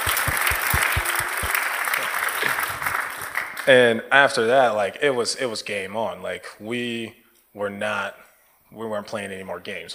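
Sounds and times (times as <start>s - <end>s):
audience hand clapping: 0.0s - 3.7s
speech: 3.7s - 9.9s.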